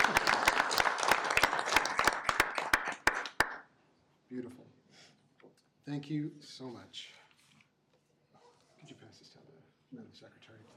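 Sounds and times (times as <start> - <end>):
round of applause: 0.0 - 3.7
speech: 5.9 - 7.2.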